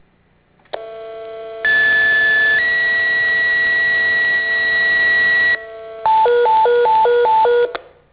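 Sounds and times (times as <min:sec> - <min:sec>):
tone: 0:01.7 - 0:07.8.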